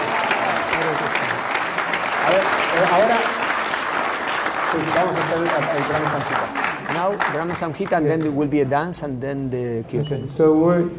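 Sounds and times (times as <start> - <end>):
audience applause: 0.0 - 8.4
speech: 2.3 - 3.4, 4.8 - 10.9.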